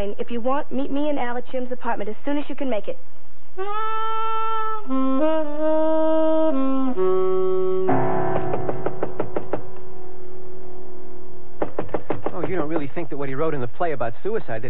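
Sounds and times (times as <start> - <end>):
speech: 0.0 - 7.9, 12.6 - 14.6
sustained musical tones: 4.8 - 11.6
knocking on apartment door: 8.3 - 9.8.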